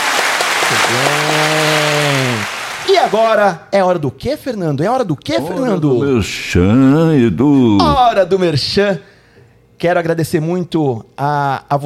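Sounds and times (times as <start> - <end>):
applause: 0.0 - 3.3
speech: 0.7 - 9.1, 9.8 - 11.8.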